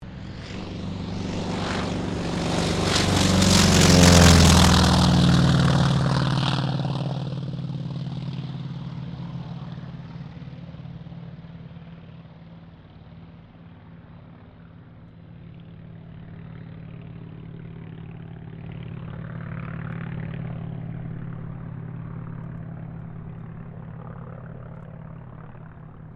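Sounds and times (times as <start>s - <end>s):
T-28D Trojan aircraft takeoff: 0.0s - 26.1s.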